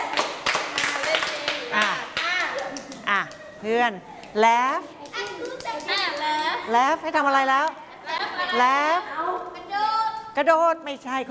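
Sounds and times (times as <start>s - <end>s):
hand clapping in a group game: 0.0s - 3.5s, 5.0s - 6.7s
speech: 3.6s - 7.8s, 8.5s - 9.2s, 10.4s - 11.2s.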